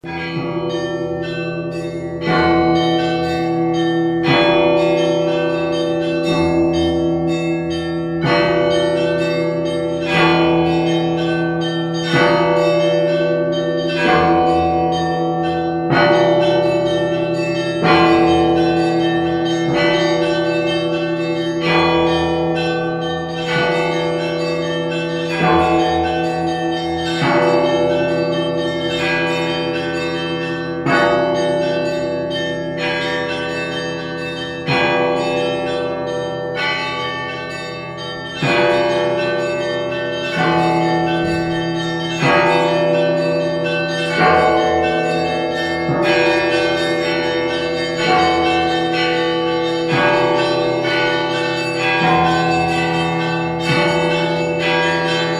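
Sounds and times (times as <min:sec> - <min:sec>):
obikhodny everyday bell ringing: 0:00.0 - 0:55.3.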